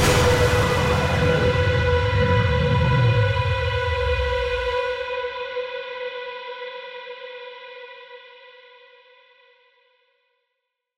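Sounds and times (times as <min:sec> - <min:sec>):
tense attack music: 0:00.0 - 0:05.3.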